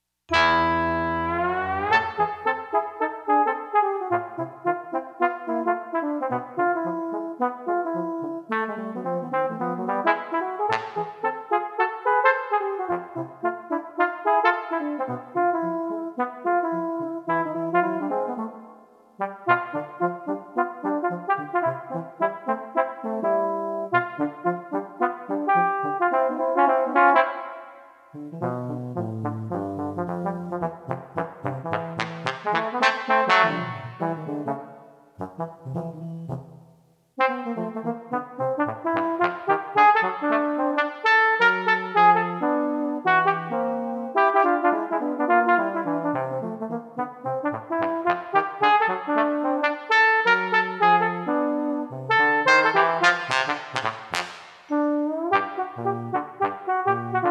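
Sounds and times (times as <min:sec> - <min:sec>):
two trombones playing: 0:00.3 - 0:57.3.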